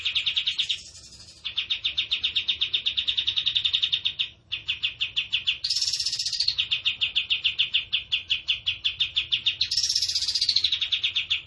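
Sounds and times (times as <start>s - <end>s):
bird singing: 0.0s - 11.4s.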